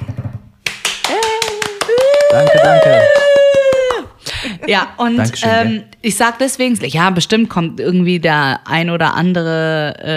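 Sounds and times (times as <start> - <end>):
hand clapping: 0.6 - 4.3
speech: 2.3 - 3.2, 4.6 - 10.1.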